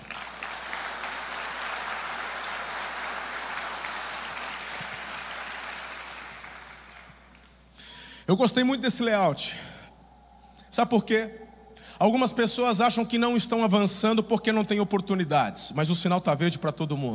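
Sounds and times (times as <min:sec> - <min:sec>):
audience applauding: 0:00.0 - 0:07.5
speech: 0:08.3 - 0:09.8, 0:10.8 - 0:11.4, 0:12.0 - 0:17.1.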